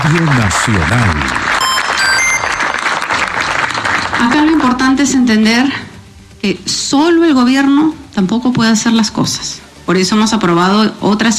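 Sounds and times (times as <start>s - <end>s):
speech: 0.0s - 1.5s, 4.2s - 11.3s
audience applause at a government event: 0.0s - 5.0s.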